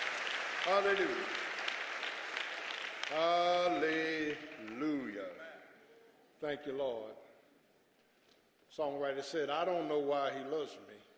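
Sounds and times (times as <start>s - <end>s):
people clapping: 0.0s - 5.4s
speech: 0.7s - 1.4s, 3.1s - 5.4s, 6.4s - 7.2s, 8.7s - 11.1s.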